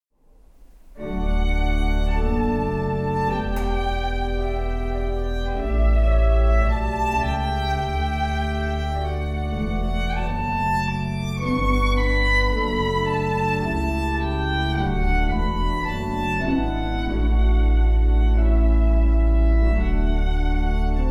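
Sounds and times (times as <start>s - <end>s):
instrumental hymn: 0.6s - 21.0s.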